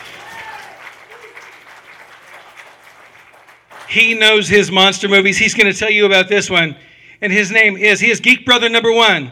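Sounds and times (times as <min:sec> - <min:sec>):
audience applause: 0:00.0 - 0:04.0
speech: 0:03.9 - 0:09.3.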